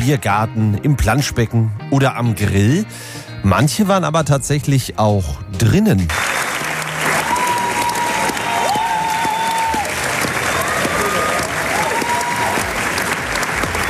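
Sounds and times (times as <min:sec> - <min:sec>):
speech: 0:00.0 - 0:06.4
closing applause at opera premiere in Theater Hagen: 0:06.1 - 0:13.8.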